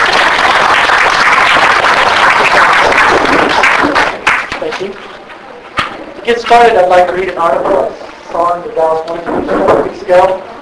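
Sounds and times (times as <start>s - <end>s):
audience applause welcoming a speaker: 0.0s - 4.8s
speech: 4.8s - 5.0s, 6.3s - 10.5s.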